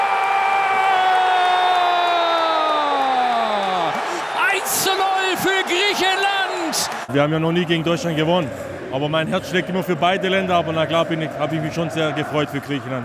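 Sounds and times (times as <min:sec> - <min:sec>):
football fans cheering a goal for Greece: 0:00.0 - 0:13.0
speech: 0:04.9 - 0:13.0.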